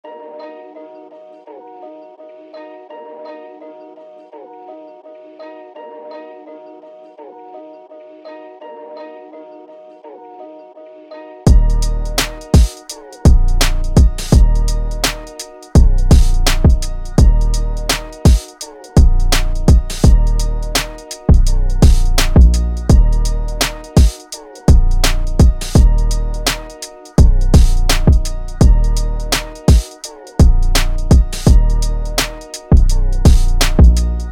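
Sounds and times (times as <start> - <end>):
beat: 11.5 - 34.3.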